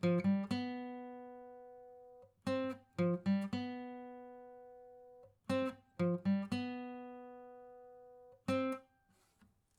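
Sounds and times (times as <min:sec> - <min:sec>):
acoustic music pattern: 0:00.0 - 0:08.9.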